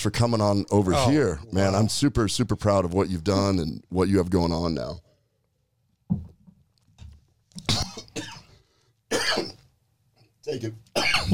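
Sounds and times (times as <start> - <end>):
speech: 0.0 - 5.1, 10.5 - 11.3
person coughing after swallowing water wrong: 7.6 - 9.6, 11.0 - 11.3.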